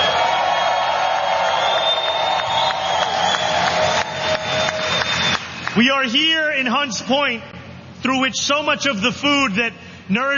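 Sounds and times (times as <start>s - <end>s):
audience applause: 0.0s - 5.8s
speech: 5.8s - 10.3s.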